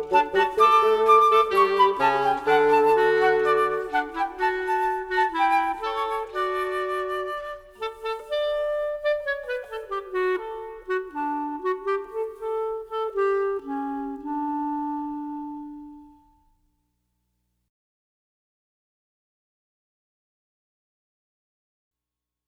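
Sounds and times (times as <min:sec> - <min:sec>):
music: 0:00.0 - 0:16.9.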